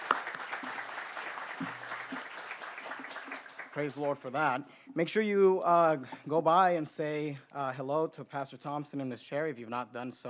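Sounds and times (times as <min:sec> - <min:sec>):
audience applause: 0:00.0 - 0:04.5
speech: 0:03.8 - 0:10.2.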